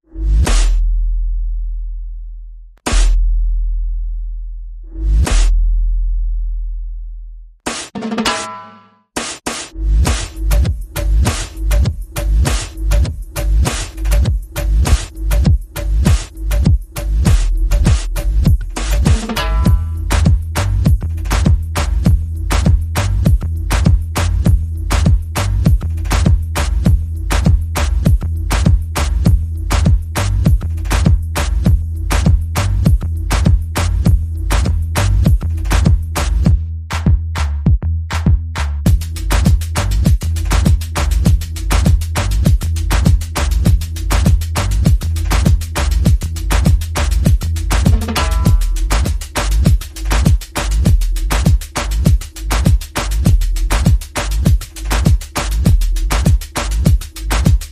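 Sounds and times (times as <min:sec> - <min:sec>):
percussion: 0:00.0 - 0:01.1, 0:02.8 - 0:03.5, 0:04.9 - 0:05.9, 0:07.6 - 0:57.7
bass: 0:00.0 - 0:07.8, 0:09.2 - 0:57.7
sound effects: 0:47.9 - 0:48.8.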